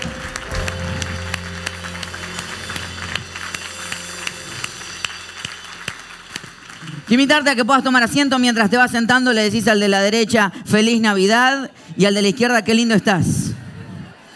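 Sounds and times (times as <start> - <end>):
audience applause: 0.0 - 8.1
speech: 7.1 - 13.4.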